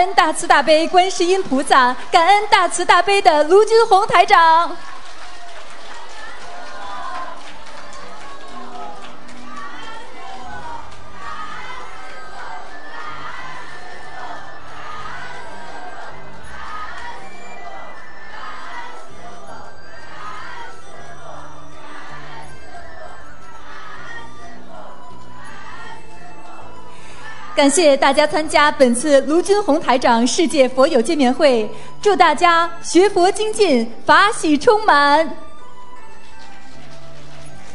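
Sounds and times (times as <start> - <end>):
speech: 0.0 - 4.9, 27.6 - 35.4
warm applause from audience: 4.2 - 19.0, 36.0 - 37.7
audience cheering: 4.7 - 27.7.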